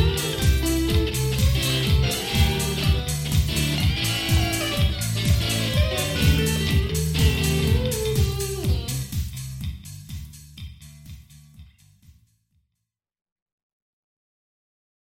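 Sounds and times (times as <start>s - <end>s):
ballad: 0.0s - 9.1s.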